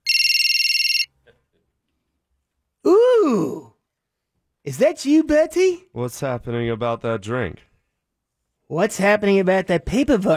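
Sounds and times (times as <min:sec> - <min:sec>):
telephone ringing with a high-pitched trill: 0:00.0 - 0:01.2
speech: 0:04.7 - 0:07.7, 0:08.7 - 0:10.3.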